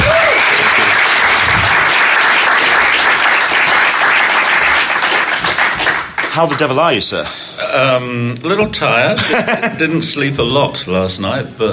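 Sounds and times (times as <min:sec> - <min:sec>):
Comic-Con panel audience applauding Brian Bolland: 0:00.0 - 0:06.8
speech: 0:06.4 - 0:11.7
laughter: 0:09.1 - 0:09.9.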